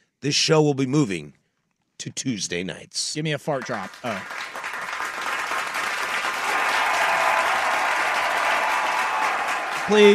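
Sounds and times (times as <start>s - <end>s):
speech: 0.2s - 1.4s, 2.0s - 4.6s, 9.9s - 10.1s
crowd applause: 3.5s - 10.1s.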